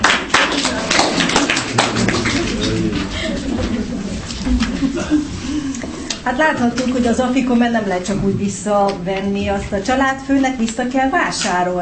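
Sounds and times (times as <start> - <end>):
applause for the children: 0.0 - 3.5
laughter: 0.7 - 6.1
speech: 6.3 - 11.8.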